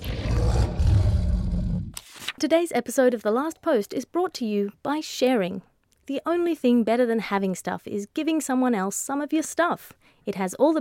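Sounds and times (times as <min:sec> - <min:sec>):
dinosaur roar: 0:00.0 - 0:02.0
speech: 0:02.4 - 0:10.8.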